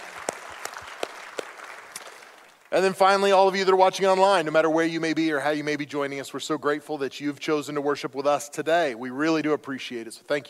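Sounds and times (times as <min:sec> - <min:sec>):
round of applause: 0:00.0 - 0:02.9
speech: 0:02.7 - 0:10.4.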